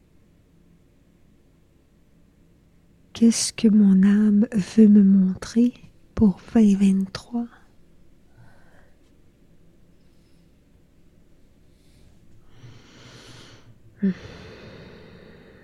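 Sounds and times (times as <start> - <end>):
faint low hum: 0.0 - 15.6
speech: 3.2 - 7.6, 14.0 - 14.4
deep inhale: 8.3 - 9.1, 10.0 - 10.6, 11.6 - 15.6.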